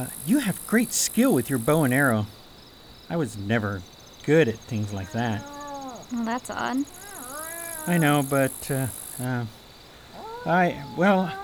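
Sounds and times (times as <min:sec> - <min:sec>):
speech: 0:00.0 - 0:02.4, 0:03.1 - 0:05.5, 0:06.1 - 0:07.1, 0:07.9 - 0:09.6, 0:10.4 - 0:11.4
big cat yowling as it fights a tiny chipmunk: 0:04.7 - 0:06.1, 0:06.8 - 0:09.3, 0:10.2 - 0:11.4.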